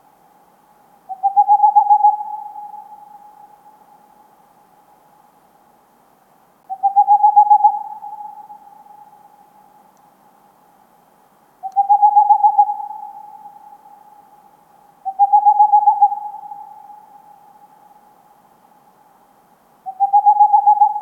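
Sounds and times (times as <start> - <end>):
Tengmalm's owl song of rapid pulsed low hoots: 1.1 - 4.1, 6.7 - 9.7, 11.6 - 18.1, 19.8 - 21.0.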